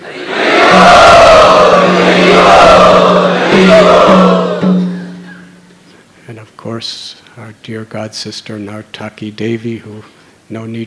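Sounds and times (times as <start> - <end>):
crowd chanting in unison at a community gathering: 0.0 - 4.9
speech: 6.8 - 10.8.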